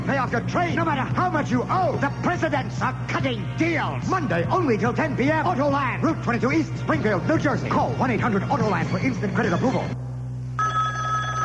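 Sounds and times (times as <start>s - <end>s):
low constant hum: 0.0s - 11.4s
speech: 0.1s - 10.1s
new car phone ringing: 10.6s - 11.4s.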